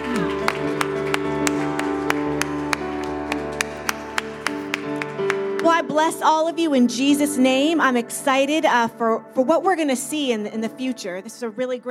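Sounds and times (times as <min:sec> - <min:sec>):
audience clapping hands as clap offering: 0:00.0 - 0:05.8
speech: 0:05.8 - 0:11.9.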